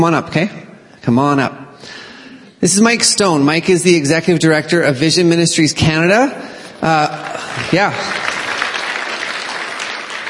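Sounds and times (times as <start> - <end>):
speech: 0.0 - 2.0, 2.6 - 8.3
audience clapping: 6.8 - 10.2.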